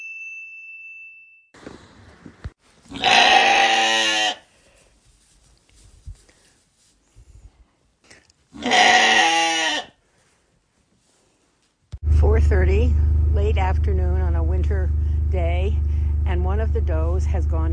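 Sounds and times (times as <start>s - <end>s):
animal bleat: 2.9s - 4.5s, 8.5s - 10.0s
Gator utility vehicle driving up on a farm: 12.0s - 17.7s
person talking: 12.1s - 17.7s.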